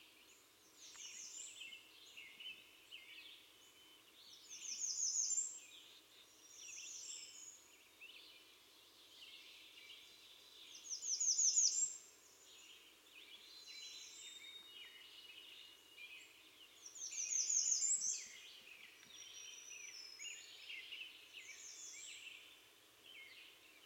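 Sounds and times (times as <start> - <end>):
American redstart Setophaga ruticilla song: 0.0 - 23.8.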